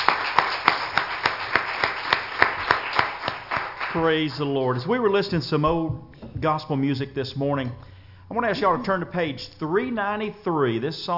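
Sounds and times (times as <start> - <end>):
audience hand clapping: 0.0 - 4.6
speech: 4.0 - 11.1.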